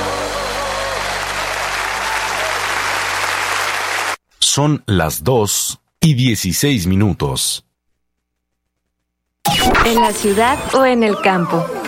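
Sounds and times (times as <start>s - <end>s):
applause: 0.0s - 4.2s
speech: 4.5s - 7.7s, 9.5s - 11.8s.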